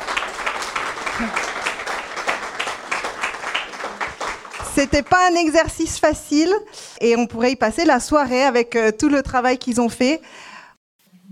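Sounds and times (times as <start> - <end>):
audience applause: 0.0 - 5.6
speech: 1.2 - 1.4, 4.8 - 10.5.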